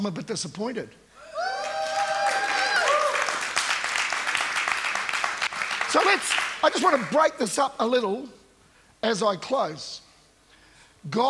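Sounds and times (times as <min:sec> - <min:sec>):
speech: 0:00.0 - 0:01.1, 0:05.9 - 0:08.4, 0:09.0 - 0:10.0, 0:11.0 - 0:11.2
audience clapping: 0:01.5 - 0:07.3.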